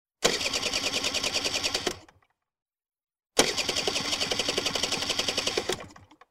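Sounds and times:
moped engine failing to start: 0:00.2 - 0:02.2, 0:03.4 - 0:06.2.

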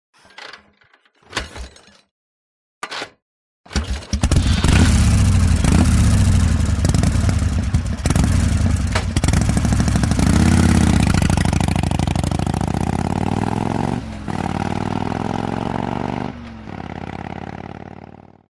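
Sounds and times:
motorcycle kick-started and riding away: 0:03.8 - 0:18.4.

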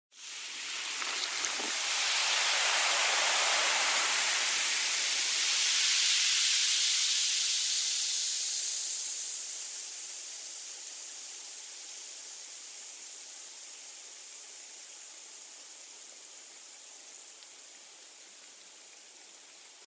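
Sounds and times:
hissing of soda gas: 0:00.2 - 0:09.5.

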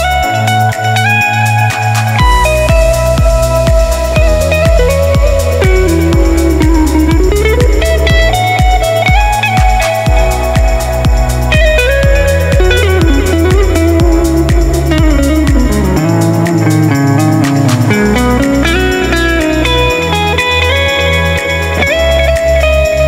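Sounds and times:
chillout music: 0:00.0 - 0:23.0.

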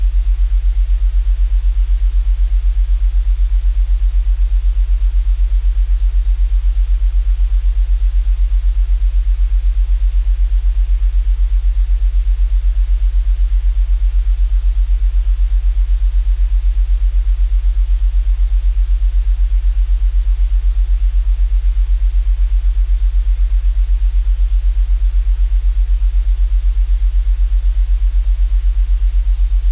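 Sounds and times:
light white noise: 0:00.0 - 0:29.7.

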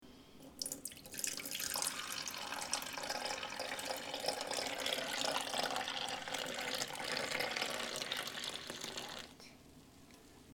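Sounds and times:
coffee pouring: 0:00.4 - 0:09.4.

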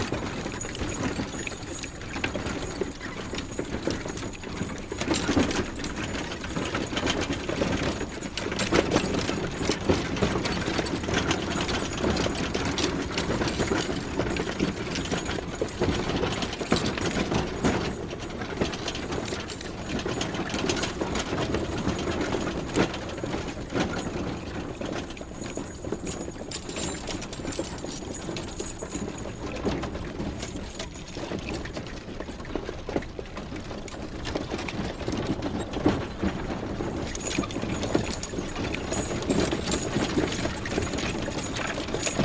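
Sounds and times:
horse-drawn carriage: 0:00.0 - 0:42.2.

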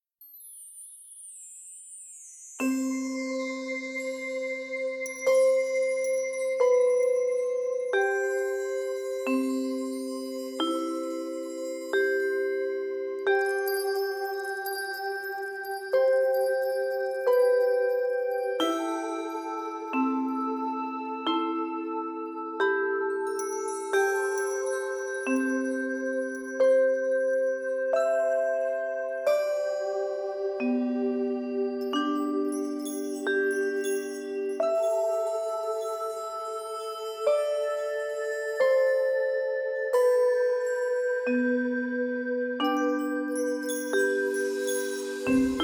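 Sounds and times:
magical background music without words: 0:01.2 - 0:45.6.

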